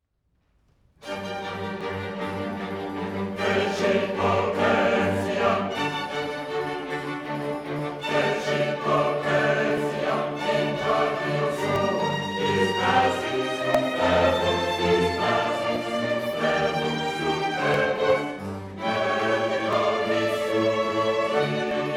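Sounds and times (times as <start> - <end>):
chorale: 1.0 - 21.9.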